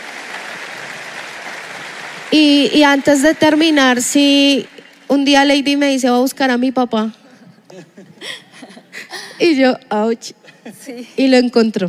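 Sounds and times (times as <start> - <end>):
audience applause: 0.0 - 5.1
speech: 2.3 - 8.4, 9.4 - 11.8
laughter: 7.3 - 9.4.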